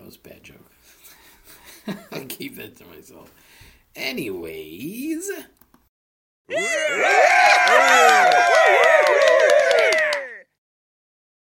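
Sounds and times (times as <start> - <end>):
speech: 1.9 - 5.6, 6.5 - 7.2
raucous crowd applause sound effect: 6.5 - 10.5.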